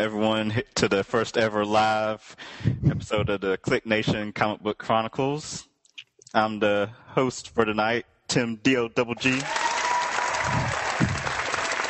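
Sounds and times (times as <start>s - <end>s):
speech: 0.0s - 5.7s, 6.3s - 9.6s
audience applause at a live comic book show taping: 9.2s - 11.8s.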